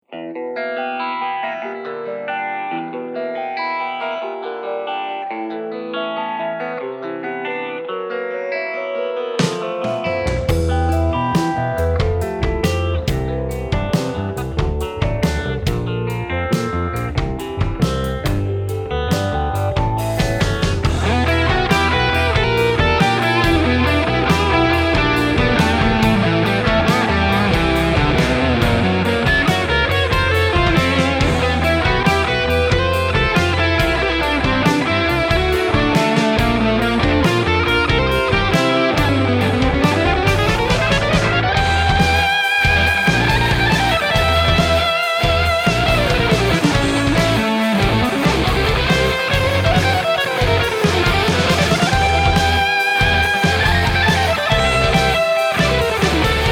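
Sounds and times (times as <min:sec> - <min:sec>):
live improvised music: 0:00.0 - 0:56.4.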